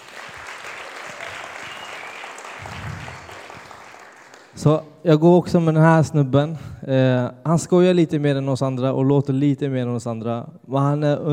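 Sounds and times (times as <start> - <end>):
audience applause: 0.0 - 4.6
low rumble of crowd noise: 2.5 - 3.7
speech: 4.6 - 11.3.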